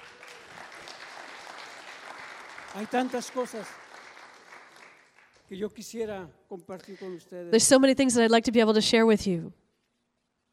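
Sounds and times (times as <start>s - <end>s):
church congregation applauding: 0.0s - 6.0s
speech: 2.8s - 3.8s, 5.5s - 9.6s.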